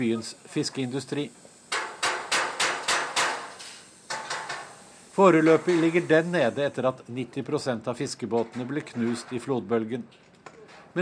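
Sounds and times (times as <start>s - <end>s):
speech: 0.0s - 1.5s, 5.2s - 10.3s
hammering in a stainless steel workshop: 1.7s - 3.5s.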